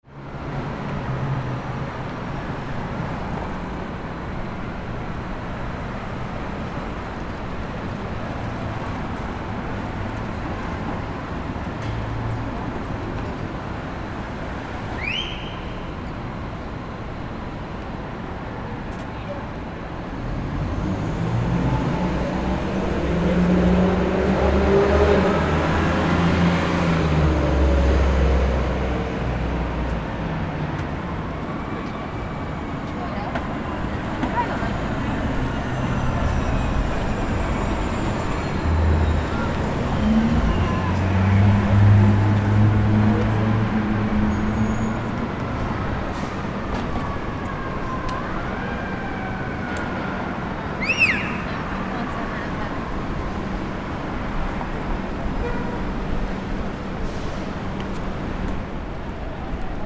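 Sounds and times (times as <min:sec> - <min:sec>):
street corner ambience: 0:00.0 - 0:59.8.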